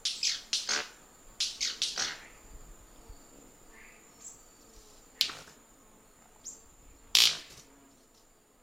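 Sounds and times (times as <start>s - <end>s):
white-bearded manakin snapping: 0.0s - 2.3s, 5.2s - 5.6s, 7.1s - 7.7s.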